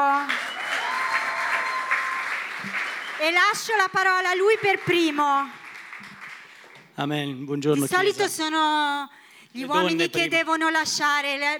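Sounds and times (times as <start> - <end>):
audience applause: 0.3 - 6.8
speech: 3.2 - 5.6, 7.0 - 11.5.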